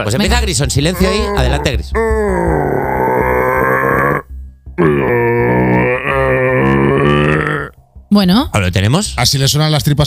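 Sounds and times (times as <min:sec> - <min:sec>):
speech: 0:00.0 - 0:02.9, 0:08.2 - 0:10.0
person imitating a rutting red deer's bellow: 0:00.9 - 0:07.8.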